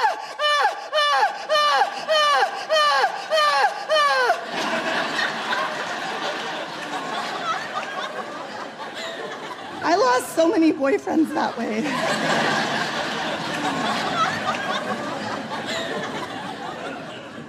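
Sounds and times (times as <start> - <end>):
person imitating loud melodramatic Greek tragedy-style crying: 0.0 - 4.5
laughter: 0.0 - 17.4
speech: 10.4 - 12.8.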